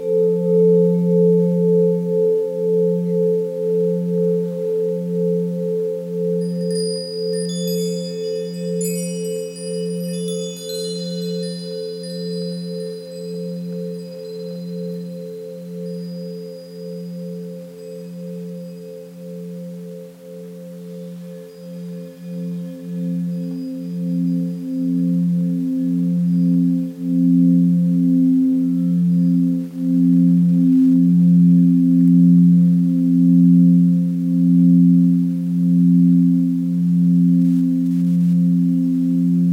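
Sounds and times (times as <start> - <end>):
Tibetan singing bowls humming: 0.0 - 39.5
chime-like pings: 6.3 - 24.8.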